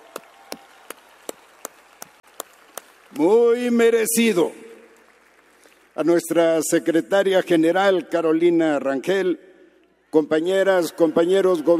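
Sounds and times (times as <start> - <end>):
audience applause: 0.0 - 6.2
speech: 3.1 - 4.6, 6.0 - 9.5, 10.1 - 11.7.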